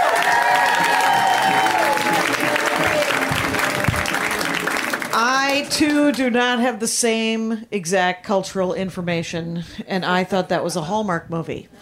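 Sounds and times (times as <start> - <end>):
crowd cheering: 0.0 - 6.1
audience applause for a comedian: 0.0 - 6.4
speech: 5.6 - 11.8.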